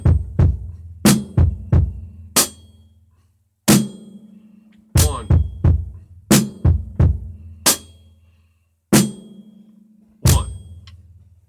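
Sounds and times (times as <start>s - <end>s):
drum beat: 0.0s - 2.6s, 5.0s - 8.0s, 10.3s - 10.9s.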